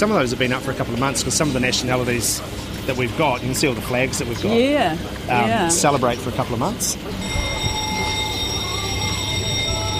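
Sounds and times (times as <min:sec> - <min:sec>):
speech: 0:00.0 - 0:07.8
factory bell ringing: 0:05.4 - 0:09.9.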